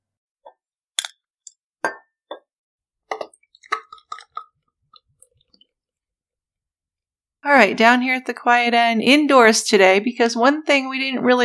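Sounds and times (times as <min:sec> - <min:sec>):
beer bottle glass clinks: 0:01.9 - 0:02.2
speech: 0:07.4 - 0:11.4.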